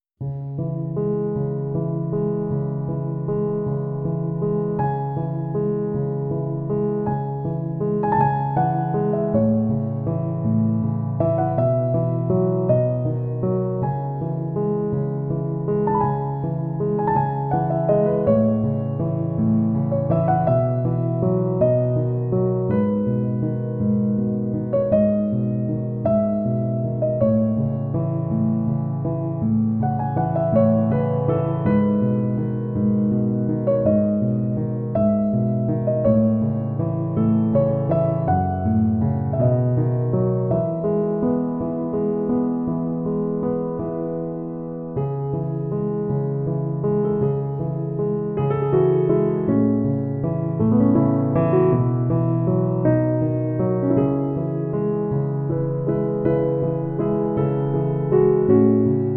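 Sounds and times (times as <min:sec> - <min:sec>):
piano study music: 0:00.2 - 0:59.1.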